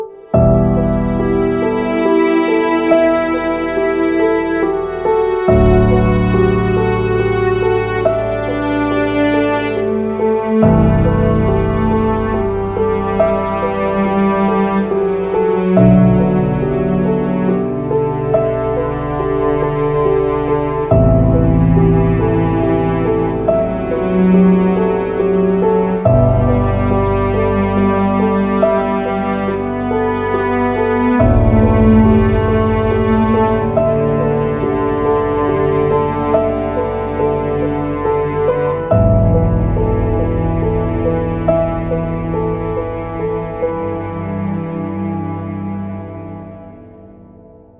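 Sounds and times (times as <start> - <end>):
soundtrack music: 0.2 - 45.6.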